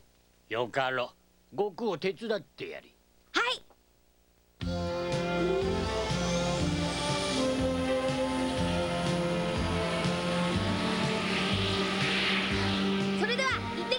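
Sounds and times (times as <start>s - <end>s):
speech: 0.5s - 3.6s
airplane engine: 5.4s - 13.8s.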